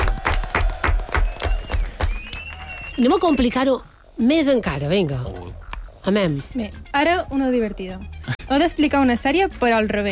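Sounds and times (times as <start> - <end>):
rhythmic clapping in steady unison beats: 0.0 - 2.8
speech: 3.0 - 10.0.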